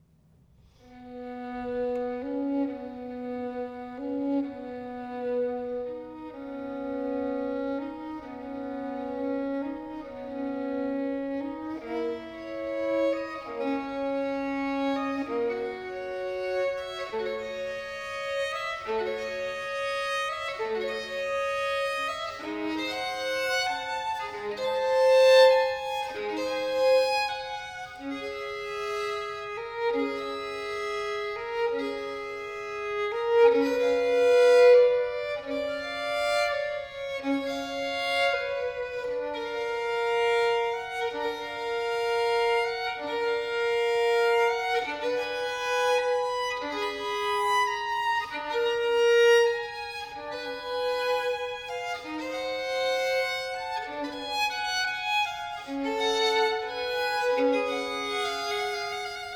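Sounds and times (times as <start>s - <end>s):
violin sonata in C major adagio: 0.0s - 59.3s.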